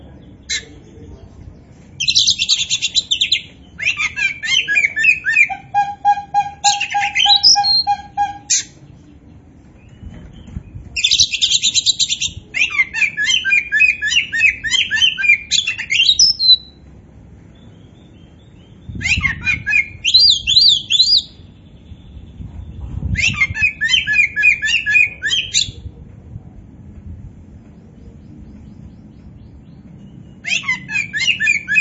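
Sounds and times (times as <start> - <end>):
low hum: 0.0 - 31.7
Oriental magpie-robin chirping song: 2.0 - 9.2, 9.8 - 16.8, 17.5 - 22.4, 23.2 - 25.7, 30.0 - 31.7.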